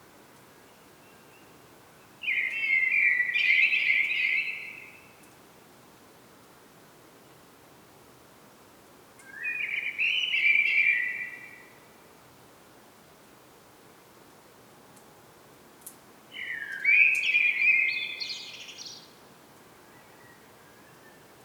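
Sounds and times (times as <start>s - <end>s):
common blackbird fluting song: 2.2s - 5.0s, 9.2s - 11.7s, 16.4s - 19.0s.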